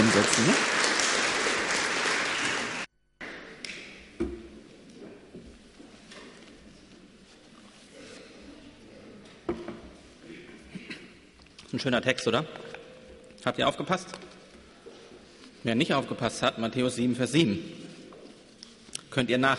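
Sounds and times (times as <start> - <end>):
group applause: 0.0 - 2.9
speech: 0.2 - 0.8, 11.8 - 12.7, 13.4 - 14.2, 15.6 - 17.8, 19.1 - 19.5.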